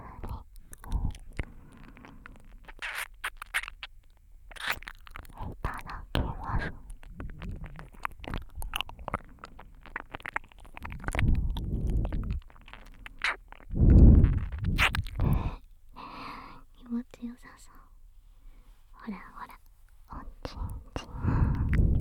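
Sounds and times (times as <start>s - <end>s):
ear licking: 0.2s - 15.7s, 20.6s - 21.9s.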